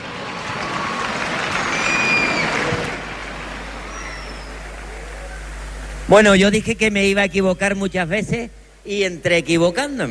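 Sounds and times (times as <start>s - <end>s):
loud applause: 0.0s - 6.1s
speech: 6.1s - 10.0s.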